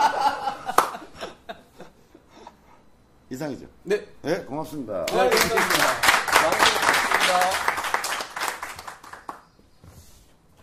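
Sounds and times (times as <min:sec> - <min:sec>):
laughter: 0:00.0 - 0:02.2
people clapping: 0:00.7 - 0:01.1, 0:05.0 - 0:09.5
speech: 0:03.4 - 0:06.6, 0:07.3 - 0:07.7.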